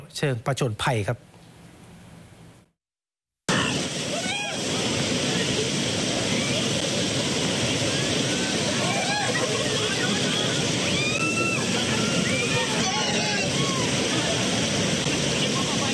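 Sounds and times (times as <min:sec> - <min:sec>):
speech: 0:00.1 - 0:01.3
rushing water from a swollen creek in rainy season in Phang Nga, Thailand: 0:03.5 - 0:15.9.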